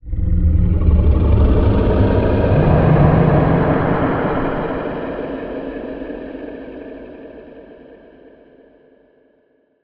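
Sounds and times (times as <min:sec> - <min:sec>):
distant low monster roar: 0:00.0 - 0:06.1.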